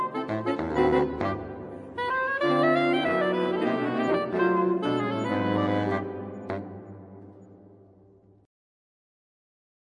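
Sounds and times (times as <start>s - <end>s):
saxophone quartet playing jazz: 0.0s - 6.8s.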